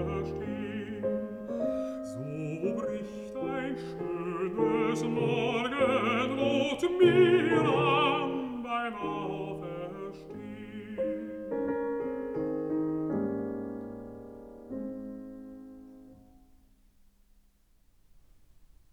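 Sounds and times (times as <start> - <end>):
person singing: 0.0 - 11.9
piano: 0.0 - 18.9.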